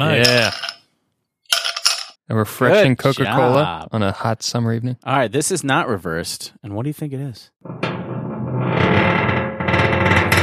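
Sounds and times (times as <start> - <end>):
speech: 0.0 - 0.6, 2.3 - 8.0
submarine hull creaking: 7.6 - 10.4.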